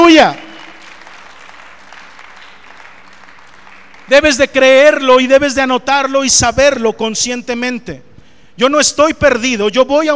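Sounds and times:
crowd applause: 0:00.0 - 0:05.1
speech: 0:00.2 - 0:00.4, 0:04.1 - 0:10.1.

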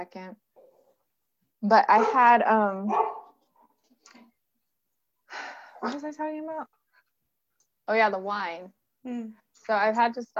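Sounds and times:
speech: 0:00.0 - 0:00.5, 0:01.6 - 0:03.2, 0:05.8 - 0:06.8, 0:07.9 - 0:10.3
dog barking at someone at the door: 0:02.0 - 0:02.3, 0:02.9 - 0:03.4
dog yipping: 0:02.9 - 0:03.3.

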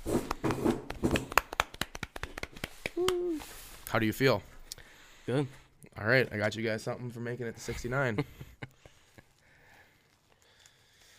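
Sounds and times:
few people clapping: 0:00.3 - 0:03.4
speech: 0:03.9 - 0:04.5, 0:05.3 - 0:08.4.

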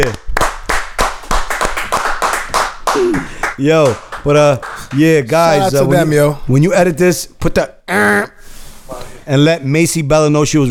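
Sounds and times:
small group clapping: 0:00.0 - 0:05.7
speech: 0:03.6 - 0:08.3, 0:09.3 - 0:10.7.

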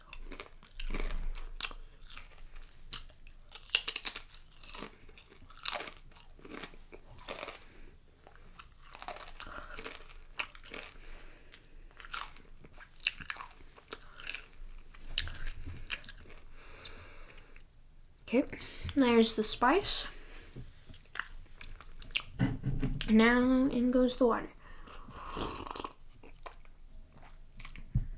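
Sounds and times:
chewing crunchy chips: 0:00.0 - 0:17.7, 0:20.9 - 0:22.4, 0:24.6 - 0:27.9
speech: 0:18.3 - 0:20.2, 0:23.1 - 0:24.6.

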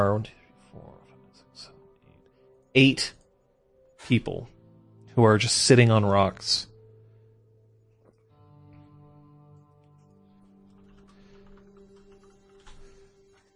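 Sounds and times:
speech: 0:00.0 - 0:00.9, 0:02.8 - 0:03.2, 0:04.1 - 0:04.5, 0:05.2 - 0:06.7
fast typing on a computer keyboard: 0:10.6 - 0:13.5.

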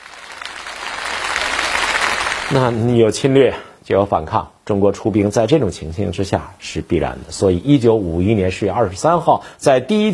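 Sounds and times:
applause: 0:00.0 - 0:02.8
speech: 0:02.5 - 0:10.1.

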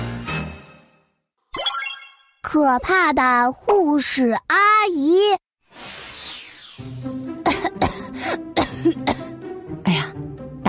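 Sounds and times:
speech: 0:02.5 - 0:06.1
child coughing: 0:07.4 - 0:09.3.

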